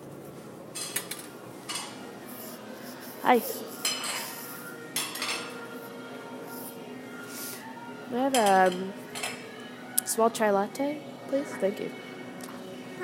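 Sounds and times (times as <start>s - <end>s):
dishes and cutlery clinking in a cafe: 0.7s - 2.1s, 3.7s - 5.7s, 8.3s - 9.6s
speech: 3.2s - 3.8s, 8.1s - 9.0s, 10.2s - 12.1s.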